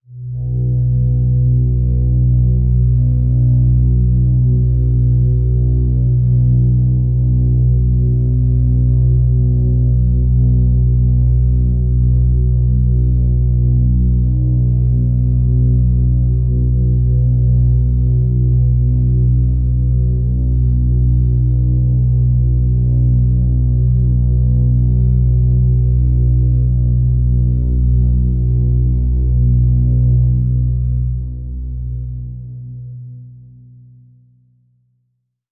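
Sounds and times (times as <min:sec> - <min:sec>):
drone: 0:00.2 - 0:33.0.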